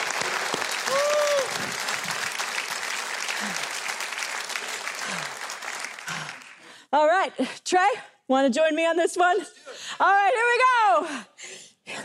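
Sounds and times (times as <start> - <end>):
audience applause: 0.0 - 6.7
speech: 7.0 - 11.3.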